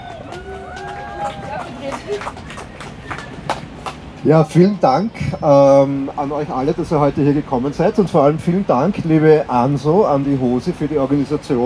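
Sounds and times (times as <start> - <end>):
audience applause: 0.0 - 4.2
speech: 1.2 - 2.6, 4.2 - 11.6.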